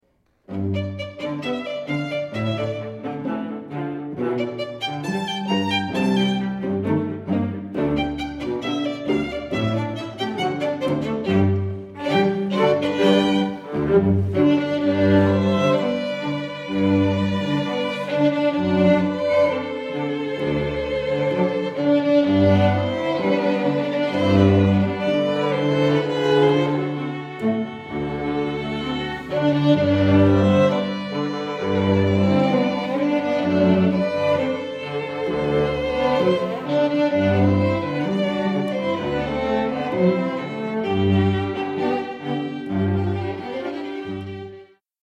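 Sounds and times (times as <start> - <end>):
string quartet: 0.2 - 44.8.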